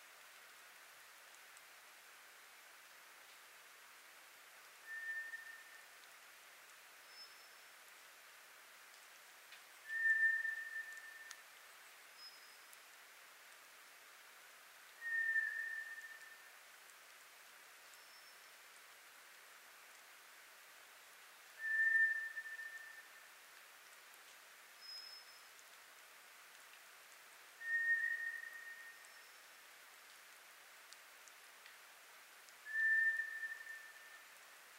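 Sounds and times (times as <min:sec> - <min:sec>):
White's thrush long whistles: 0:04.8 - 0:05.8, 0:09.8 - 0:11.4, 0:15.0 - 0:16.5, 0:21.6 - 0:23.3, 0:27.6 - 0:29.4, 0:32.6 - 0:34.4.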